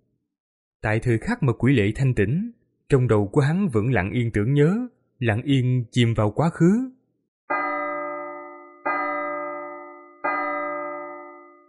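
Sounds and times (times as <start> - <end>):
speech: 0.8 - 7.0
deep slow tolling bell: 7.5 - 11.6.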